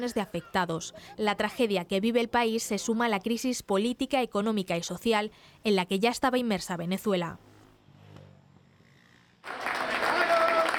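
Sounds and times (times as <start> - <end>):
speech: 0.0 - 7.5
applause from welcoming families and friends: 9.4 - 10.7.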